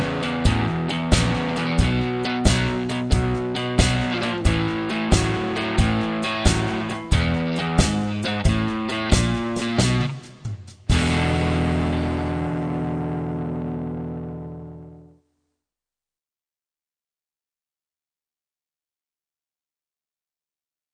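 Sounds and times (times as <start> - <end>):
rock and blues solos: 0.0 - 15.1.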